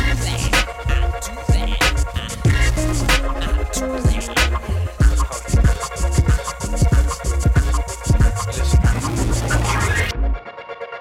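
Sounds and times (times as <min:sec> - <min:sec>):
backbeat rhythm: 0:00.0 - 0:10.1.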